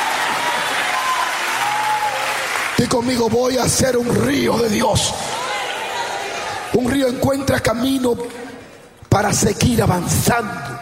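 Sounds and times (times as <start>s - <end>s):
crowd audience applauding: 0.0s - 4.3s
speech: 2.8s - 5.4s, 6.7s - 8.4s, 9.1s - 10.8s.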